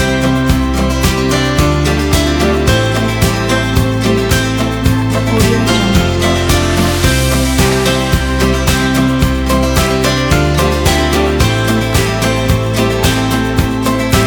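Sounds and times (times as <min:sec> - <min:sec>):
corporate acoustic guitar music: 0:00.0 - 0:14.2.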